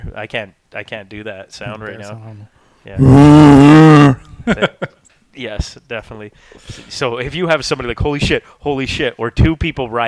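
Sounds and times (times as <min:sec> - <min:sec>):
speech: 0:00.0 - 0:10.0
bear growl played from a Bluetooth speaker: 0:03.0 - 0:04.3.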